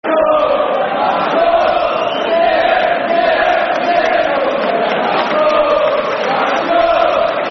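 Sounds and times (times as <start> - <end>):
football crowd chanting: 0.0 - 7.4.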